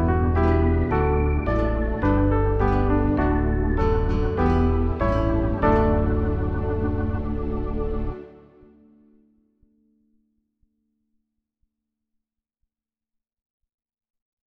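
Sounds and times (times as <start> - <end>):
backing music: 0.0 - 8.8.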